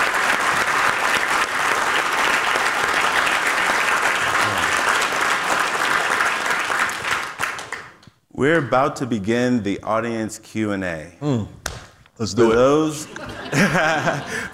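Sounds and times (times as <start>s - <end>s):
audience applause at a live talk: 0.0s - 8.0s
laughter: 4.4s - 4.9s, 12.4s - 14.5s
speech: 8.4s - 11.6s, 12.2s - 14.5s.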